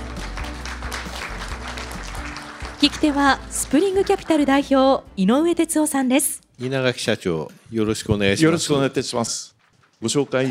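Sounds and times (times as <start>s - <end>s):
audience applause welcoming the speaker at an investment seminar: 0.0s - 4.7s
speech: 2.8s - 10.4s.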